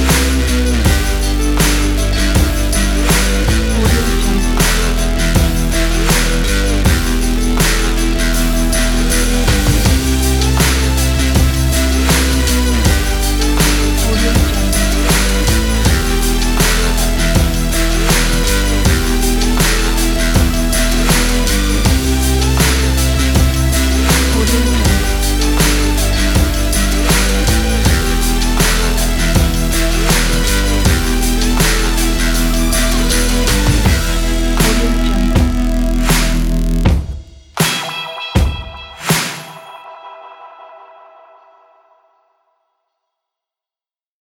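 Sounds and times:
indie rock music: 0:00.0 - 0:40.6.

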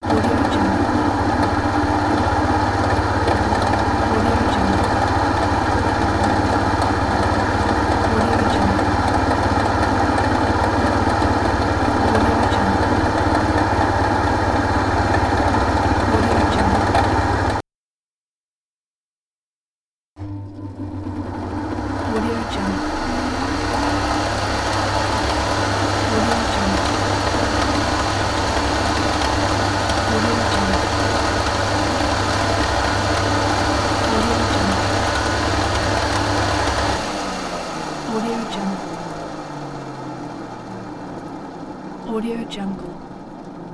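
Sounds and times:
machine noise: 0:00.0 - 0:17.6, 0:20.2 - 0:43.7.

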